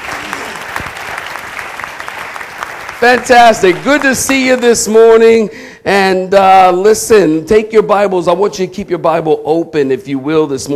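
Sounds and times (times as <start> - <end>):
audience applause: 0.0 - 4.6
speech: 3.0 - 10.7.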